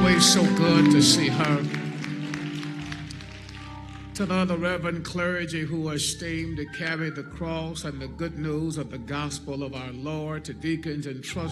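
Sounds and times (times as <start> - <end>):
audience hand clapping applause: 0.0 - 5.0
speech: 0.2 - 1.9, 4.2 - 11.5.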